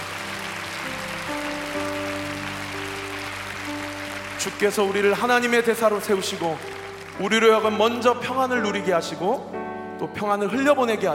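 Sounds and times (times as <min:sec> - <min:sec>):
audience applause: 0:00.0 - 0:08.2
keyboard or organ chords: 0:00.0 - 0:11.1
speech: 0:04.4 - 0:11.1.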